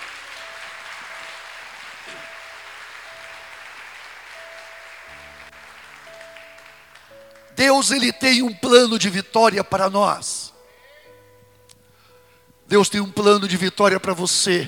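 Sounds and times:
audience applauding: 0.0 - 8.3
sustained organ-like tone: 0.0 - 10.6
speech: 7.6 - 10.5, 12.7 - 14.6.

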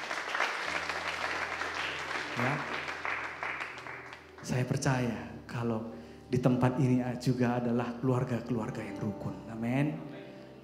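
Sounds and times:
audience clapping: 0.0 - 4.8
speech: 2.4 - 2.7, 4.4 - 10.1.

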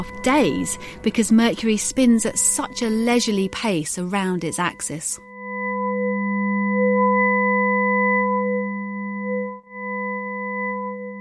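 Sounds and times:
speech: 0.0 - 5.3
humming electronic drone of sonified solar wind waves in Mercury's magnetic field: 0.0 - 11.1.

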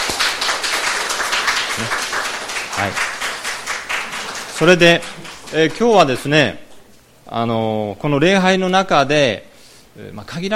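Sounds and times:
audience applause: 0.0 - 6.2
speech: 2.8 - 3.1, 4.6 - 6.6, 7.3 - 10.5.

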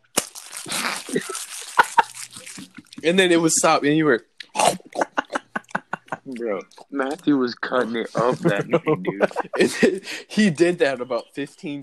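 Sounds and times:
wrapper crinkled to imitate eating a bag of chips: 0.0 - 3.4
laughter: 0.7 - 4.0, 4.7 - 11.8
speech: 3.0 - 4.3, 6.4 - 11.8.

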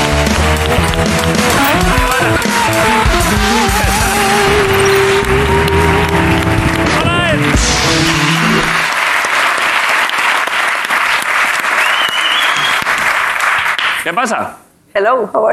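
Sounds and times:
audience applause: 0.0 - 14.0
speech: 14.2 - 15.5.

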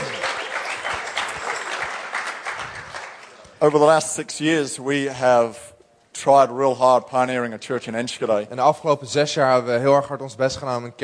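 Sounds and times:
audience applause: 0.0 - 3.5
speech: 3.6 - 11.0.

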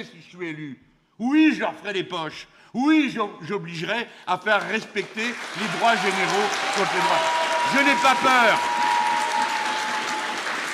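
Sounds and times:
speech: 0.0 - 8.9
crowd applause at rally: 4.6 - 10.7.

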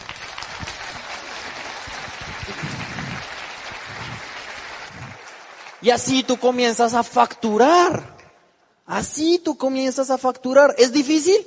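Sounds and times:
audience applause: 0.0 - 6.8
speech: 5.8 - 8.1, 8.9 - 11.4.

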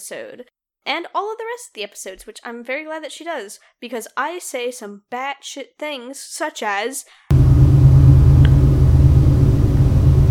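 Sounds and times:
speech: 0.0 - 7.2
train sound effect: 7.3 - 10.2.

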